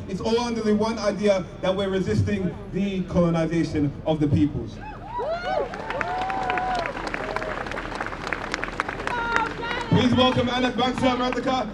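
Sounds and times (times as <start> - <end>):
speech: 0.1 - 5.9, 10.0 - 11.7
audience applause: 5.3 - 11.5.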